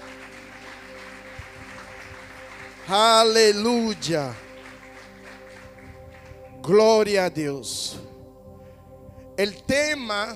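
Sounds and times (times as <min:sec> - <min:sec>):
crowd clapping: 0:00.0 - 0:07.2
speech: 0:02.9 - 0:04.4, 0:06.6 - 0:08.1, 0:09.4 - 0:10.3.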